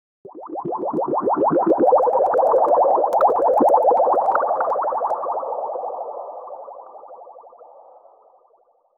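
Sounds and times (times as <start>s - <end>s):
health potion bubbling: 0.2s - 6.0s.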